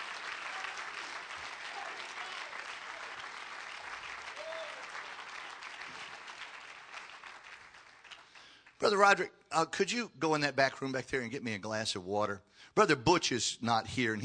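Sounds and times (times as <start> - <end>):
audience clapping hands: 0.0 - 9.2
speech: 8.8 - 14.2.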